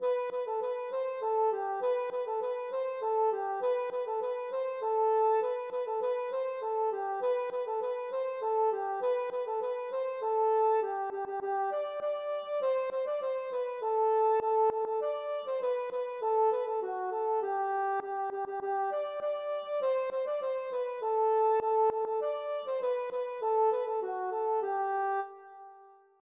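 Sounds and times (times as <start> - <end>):
Breton hanterdro folk dance music: 0.0 - 25.3.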